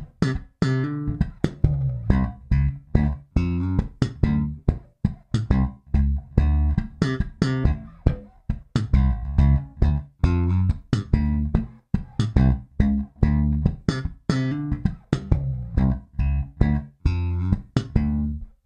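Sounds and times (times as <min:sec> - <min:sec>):
slap bass in D7: 0:00.0 - 0:18.6.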